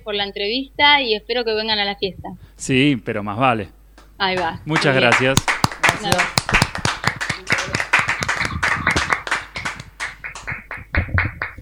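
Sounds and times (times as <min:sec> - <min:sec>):
speech: 0:00.0 - 0:06.4
small group of people clapping: 0:04.0 - 0:11.6.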